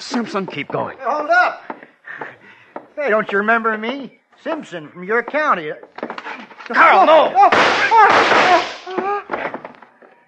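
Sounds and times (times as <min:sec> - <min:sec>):
speech: 0:00.1 - 0:01.6, 0:03.0 - 0:06.0, 0:06.7 - 0:09.0
people shouting: 0:06.8 - 0:09.4
gunshot in a radio suspense drama: 0:07.4 - 0:08.9.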